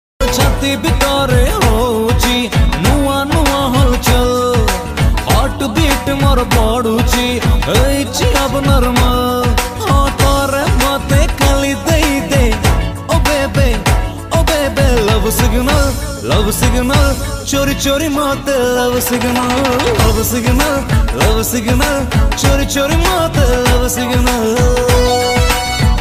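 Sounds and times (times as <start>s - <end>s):
love song ringtone: 0.2s - 25.9s.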